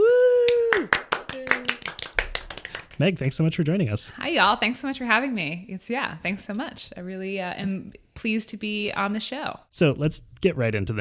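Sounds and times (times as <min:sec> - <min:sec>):
hands clapping: 0:00.4 - 0:03.4
speech: 0:03.0 - 0:11.0.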